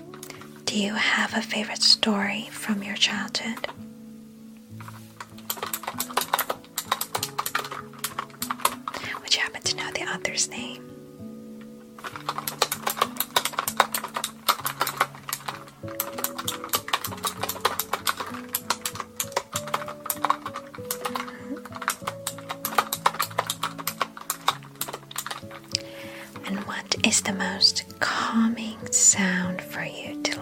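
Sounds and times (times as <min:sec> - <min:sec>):
soft low melodic tone: 0:00.0 - 0:05.3, 0:06.0 - 0:30.3
speech: 0:00.7 - 0:03.9, 0:10.0 - 0:11.0
clicky keyboard typing: 0:04.9 - 0:10.0, 0:12.0 - 0:27.2.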